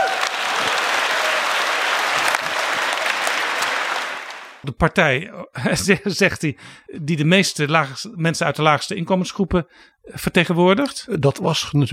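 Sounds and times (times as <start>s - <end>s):
audience applause: 0.0s - 4.6s
speech: 4.6s - 11.9s.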